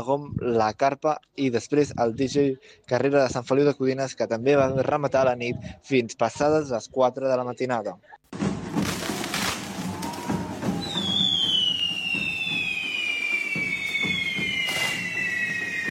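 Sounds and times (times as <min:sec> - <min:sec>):
speech: 0:00.0 - 0:08.5
fireworks crackling and popping at a correfoc fire run in Castellterçol: 0:08.6 - 0:15.8
firework whistle sliding downward in pitch: 0:09.9 - 0:15.8.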